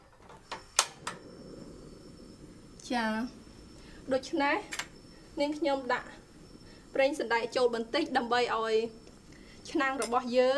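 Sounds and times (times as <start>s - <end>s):
gas stove flame hissing: 0.1s - 10.5s
gas stove burner igniter clicks: 0.3s - 1.3s, 3.8s - 10.5s
speech: 2.9s - 3.4s, 4.1s - 4.8s, 5.4s - 6.2s, 7.0s - 9.0s, 9.6s - 10.5s.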